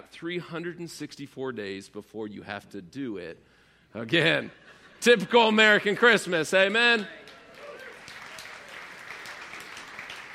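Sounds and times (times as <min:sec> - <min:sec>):
speech: 0:00.1 - 0:07.3
audience clapping: 0:06.5 - 0:10.3.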